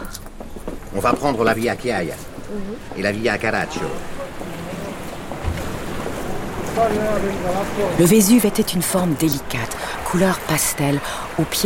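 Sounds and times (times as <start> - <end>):
wind: 0.0 - 11.6
speech: 0.9 - 4.2, 6.8 - 11.6
rough agitated sea waves off Naples: 2.8 - 11.6.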